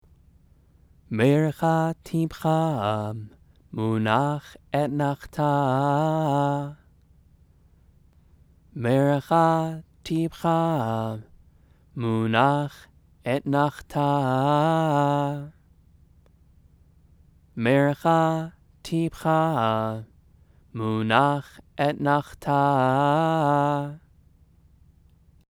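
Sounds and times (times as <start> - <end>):
scripture chanting: 1.1 - 6.9, 8.7 - 15.6, 17.5 - 24.1.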